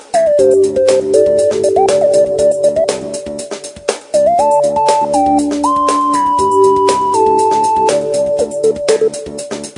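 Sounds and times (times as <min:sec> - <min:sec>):
sci-fi ringtone: 0:00.4 - 0:03.4, 0:04.4 - 0:09.3.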